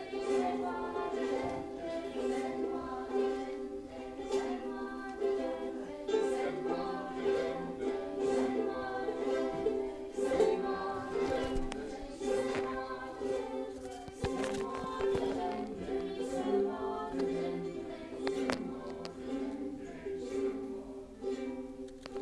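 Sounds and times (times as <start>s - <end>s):
ukulele: 0.0s - 22.1s.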